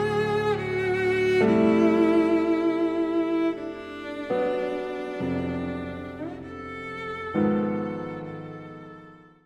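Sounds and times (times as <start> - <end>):
cello: 0.0 - 9.4
piano: 0.0 - 9.4.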